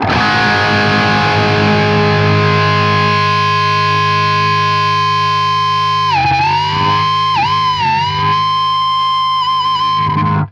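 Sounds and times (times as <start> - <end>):
guitar power chords: 0.0 - 10.4.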